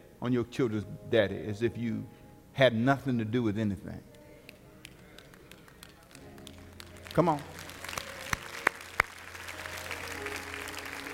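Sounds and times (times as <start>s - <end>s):
speech: 0.2s - 4.1s, 7.2s - 7.6s
audience clapping: 4.8s - 11.1s.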